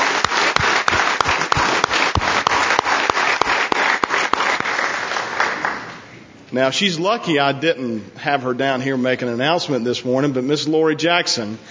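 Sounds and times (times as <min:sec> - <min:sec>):
audience applause: 0:00.0 - 0:06.0
speech: 0:06.5 - 0:11.6.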